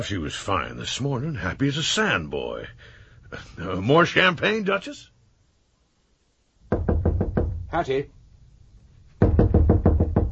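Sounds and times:
speech: 0:00.0 - 0:05.1, 0:07.7 - 0:08.2
hard knocks on a door: 0:06.7 - 0:07.8, 0:09.2 - 0:10.3.

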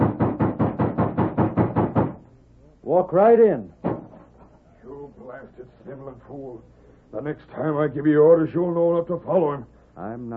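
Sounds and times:
loud knock on a door: 0:00.0 - 0:02.2, 0:03.8 - 0:04.3
speech: 0:02.9 - 0:03.8, 0:05.4 - 0:10.3.

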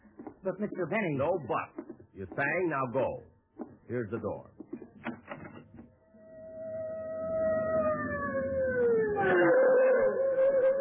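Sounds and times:
speech: 0:00.4 - 0:04.6
fire engine siren arriving: 0:06.0 - 0:10.7.

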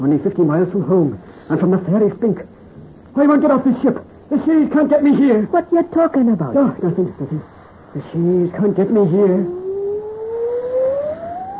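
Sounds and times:
speech: 0:00.0 - 0:02.6, 0:03.2 - 0:09.6
wailing cry like a woman keening: 0:09.4 - 0:11.5.

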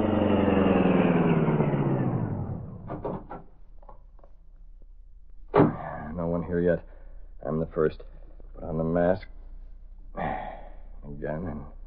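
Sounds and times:
high-powered car racing at top speed: 0:00.0 - 0:03.0
speech: 0:06.5 - 0:09.4, 0:11.2 - 0:11.8.

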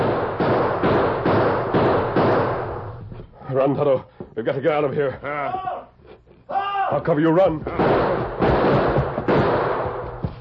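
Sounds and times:
gunshots: 0:00.0 - 0:02.9, 0:07.6 - 0:10.4
speech: 0:03.6 - 0:05.8, 0:06.5 - 0:08.9.

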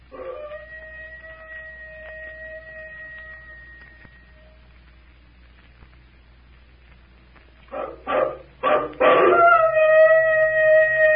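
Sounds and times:
werewolf-like howling: 0:00.0 - 0:04.7, 0:07.7 - 0:11.1.

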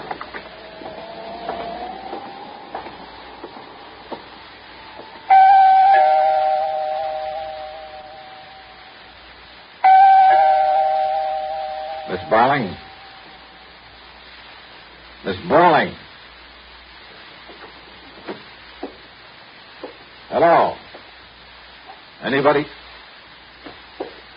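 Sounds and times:
apartment doorbell chiming: 0:05.3 - 0:08.8, 0:09.9 - 0:13.3
speech: 0:12.4 - 0:12.8, 0:22.4 - 0:22.8.

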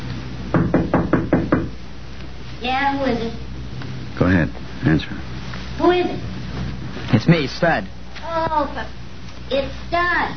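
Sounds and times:
knocking on a door: 0:00.5 - 0:01.8
speech: 0:02.6 - 0:03.5, 0:04.2 - 0:06.4, 0:07.2 - 0:10.3.

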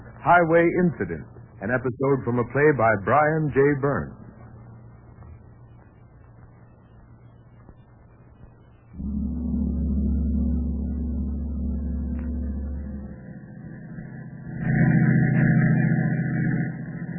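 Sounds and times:
speech: 0:00.2 - 0:04.2
car engine drone as a radio drama night driving effect: 0:09.0 - 0:17.1.

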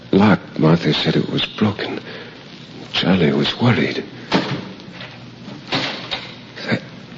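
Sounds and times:
hiss: 0:00.0 - 0:07.1
speech: 0:00.1 - 0:02.2, 0:02.9 - 0:04.6
outer door closing: 0:04.3 - 0:06.4.

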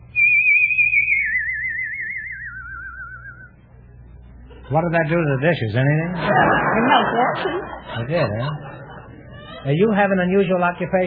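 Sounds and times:
human whistle tone with strong vibrato: 0:00.0 - 0:03.6
faint low hum: 0:00.0 - 0:11.0
laughter: 0:04.4 - 0:11.0
speech: 0:04.7 - 0:08.8, 0:09.6 - 0:11.0.

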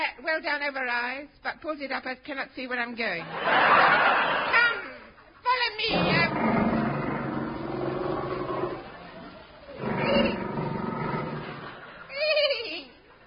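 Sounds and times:
speech: 0:00.1 - 0:04.7
laughter: 0:03.2 - 0:05.2, 0:11.0 - 0:13.2
tiger roaring in rasping bursts: 0:05.9 - 0:12.0.

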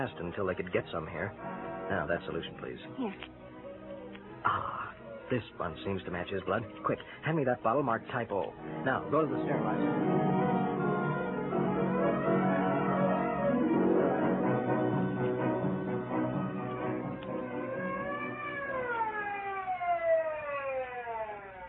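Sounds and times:
speech: 0:00.0 - 0:03.5, 0:04.4 - 0:10.4
ambulance siren wailing: 0:08.6 - 0:21.6.

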